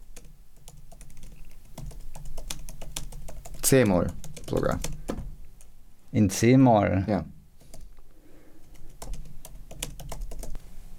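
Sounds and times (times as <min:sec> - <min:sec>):
typing a prompt on a computer keyboard: 0:00.1 - 0:05.7, 0:08.6 - 0:10.6
speech: 0:03.7 - 0:05.0, 0:06.1 - 0:07.3.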